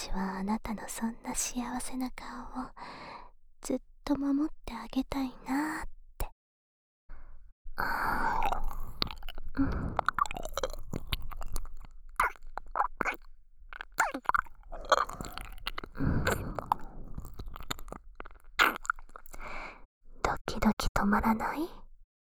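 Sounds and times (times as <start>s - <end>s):
speech: 0.1s - 3.0s, 3.7s - 5.9s, 9.6s - 10.0s, 21.1s - 21.8s
ear licking: 8.1s - 19.6s.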